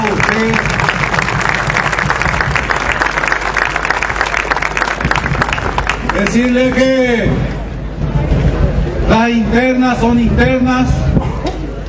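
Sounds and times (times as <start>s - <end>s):
speech: 0.0s - 0.8s, 6.3s - 7.5s, 9.2s - 11.1s
crowd applause: 0.0s - 9.1s.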